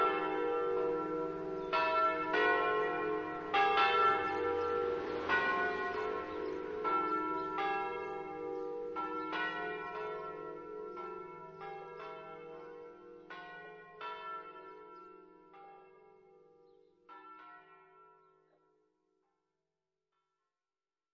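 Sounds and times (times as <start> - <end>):
bells ringing: 0.0 - 15.9.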